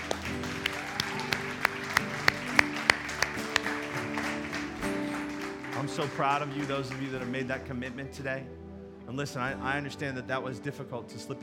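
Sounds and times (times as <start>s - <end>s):
audience clapping in a large room: 0.0s - 8.3s
sustained instrumental music: 0.0s - 11.4s
speech: 5.9s - 11.4s.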